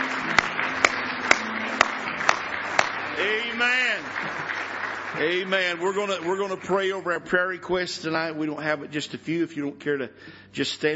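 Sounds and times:
audience hand clapping: 0.0s - 7.6s
speech: 5.1s - 10.9s.

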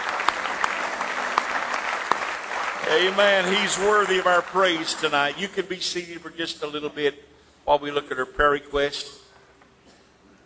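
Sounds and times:
audience clapping hands in praise: 0.0s - 6.2s
speech: 2.9s - 9.2s.

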